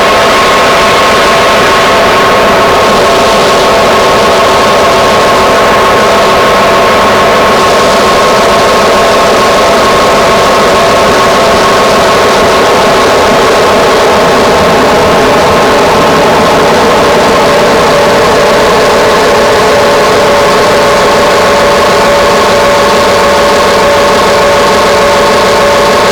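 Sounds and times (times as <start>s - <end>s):
drone noise: 0.0s - 26.1s.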